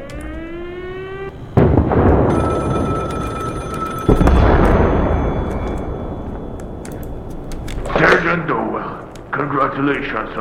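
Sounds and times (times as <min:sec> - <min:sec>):
explosions from bombs dropped on Rostov: 0:00.1 - 0:10.3
high ringing tone: 0:00.6 - 0:08.1
speech: 0:09.8 - 0:10.3.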